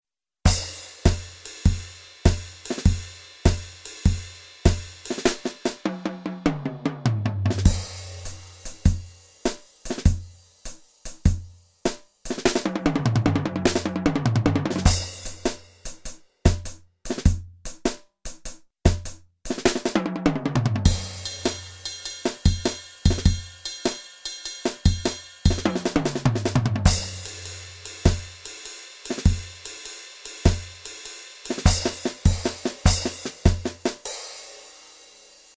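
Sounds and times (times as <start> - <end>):
jazz beats: 0.5 - 34.4.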